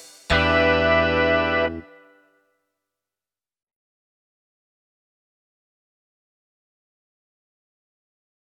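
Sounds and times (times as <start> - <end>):
snare drum: 0.0 - 0.6
bass drum: 0.0 - 1.8.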